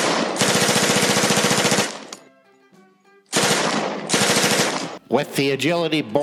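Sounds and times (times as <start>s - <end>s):
machine gun burst: 0.0s - 2.1s, 3.4s - 5.0s
speech: 5.1s - 6.2s.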